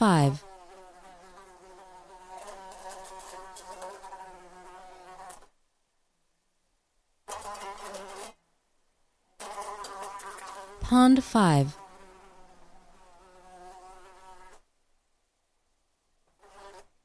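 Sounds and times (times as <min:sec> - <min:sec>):
speech: 0:00.0 - 0:00.5, 0:10.9 - 0:11.8
fly buzzing: 0:00.1 - 0:05.5, 0:07.3 - 0:08.4, 0:09.4 - 0:10.9, 0:11.5 - 0:14.7, 0:16.4 - 0:16.9.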